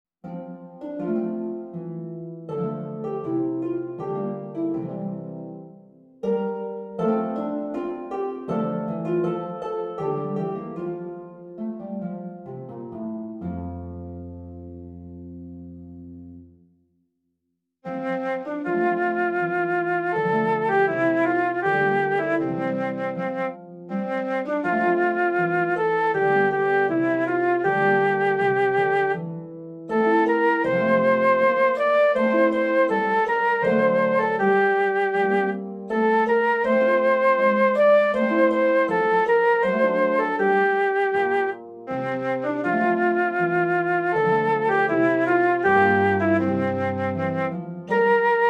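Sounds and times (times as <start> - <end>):
harp: 0.2 - 16.4, 17.9 - 48.4
flute: 17.9 - 48.4.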